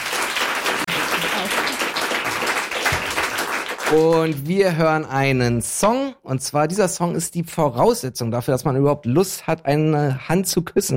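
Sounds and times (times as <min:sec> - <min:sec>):
studio audience applause: 0:00.0 - 0:04.8
speech: 0:03.9 - 0:10.9.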